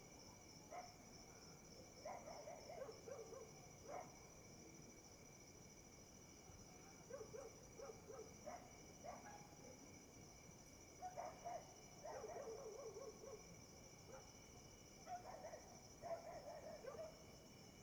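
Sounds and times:
cricket chirping: 0:00.0 - 0:17.8
dog barking closer: 0:02.0 - 0:04.1, 0:07.1 - 0:09.6, 0:11.0 - 0:13.4, 0:15.1 - 0:17.2.

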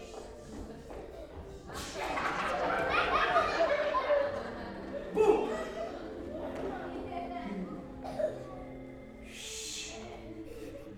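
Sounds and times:
clown show music: 0:00.0 - 0:10.9
children laughing at a clown: 0:01.7 - 0:08.7.

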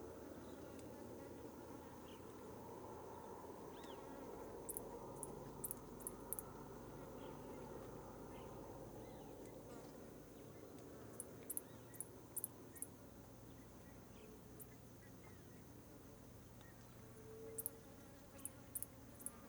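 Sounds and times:
cricket chirps at sunset: 0:00.0 - 0:19.4.

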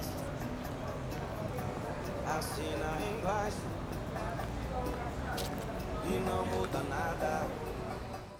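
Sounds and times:
ambience in front of shops in a commercial sector: 0:00.0 - 0:08.3
music playing in front of shops: 0:00.0 - 0:08.3.

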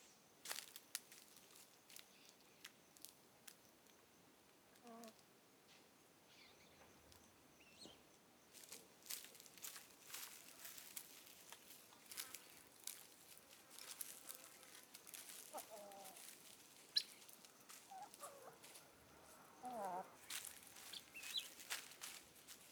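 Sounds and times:
chickens walking on grass outside the coop: 0:00.4 - 0:03.6, 0:08.5 - 0:22.7
chickens clucking outside the coop: 0:09.3 - 0:22.3.

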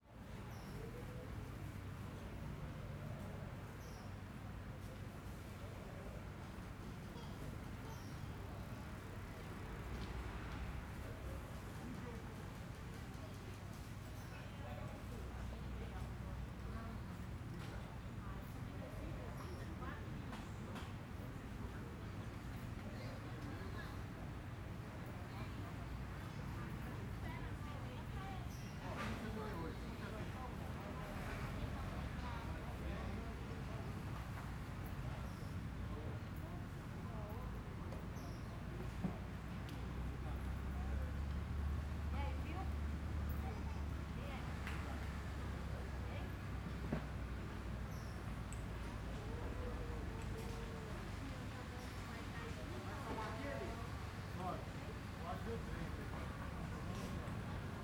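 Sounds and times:
distant murmur of voices in a quiet residential square by day: 0:00.1 - 0:57.8.

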